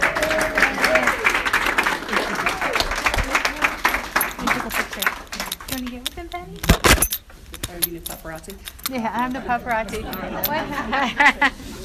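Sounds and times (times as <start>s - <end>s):
laughter: 0.0s - 5.6s, 8.9s - 11.8s
audience applause: 0.0s - 5.9s
speech: 8.4s - 11.7s.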